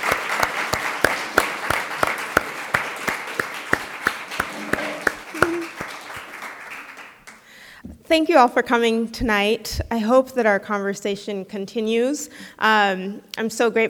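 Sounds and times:
audience applause: 0:00.0 - 0:07.5
speech: 0:08.1 - 0:13.8.

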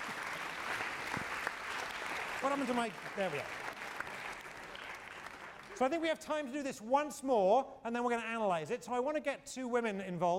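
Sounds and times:
classroom applause: 0:00.0 - 0:05.8
speech: 0:02.4 - 0:03.6, 0:05.8 - 0:10.3.

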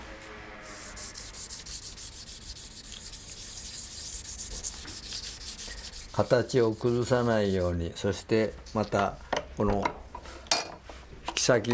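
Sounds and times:
sandpaper polishing Edo ivory after filing: 0:00.6 - 0:07.8
speech: 0:06.2 - 0:10.0, 0:11.4 - 0:11.7.

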